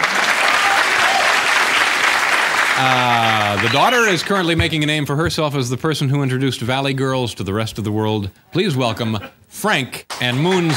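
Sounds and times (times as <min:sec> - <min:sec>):
studio audience applause: 0:00.0 - 0:04.8, 0:10.1 - 0:10.7
speech: 0:02.8 - 0:10.7.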